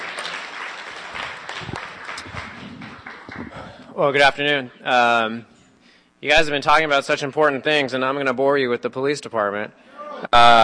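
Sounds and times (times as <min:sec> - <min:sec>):
crowd clapping: 0:00.0 - 0:03.9
speech: 0:04.0 - 0:05.5, 0:06.2 - 0:10.6.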